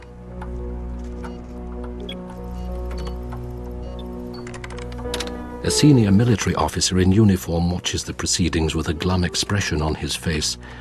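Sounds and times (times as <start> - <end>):
agent typing on a computer keyboard with his left hand: 1.2 - 5.4
speech: 5.7 - 10.7.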